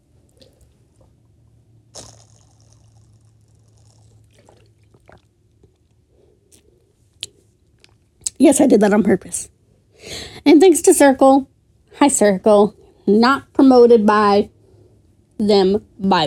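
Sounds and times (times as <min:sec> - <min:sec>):
person gulping water: 0:01.9 - 0:08.1
speech: 0:08.4 - 0:09.6, 0:10.4 - 0:14.6, 0:15.4 - 0:16.2.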